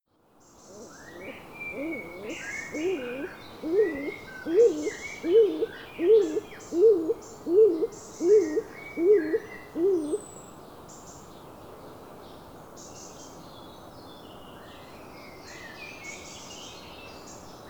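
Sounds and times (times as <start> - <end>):
stock dove coos in low soft double notes: 0.7 - 10.2.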